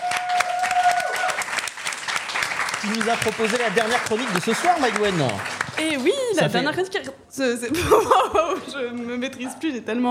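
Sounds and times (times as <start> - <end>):
audience clapping: 0.0 - 6.8
speech: 2.8 - 10.0.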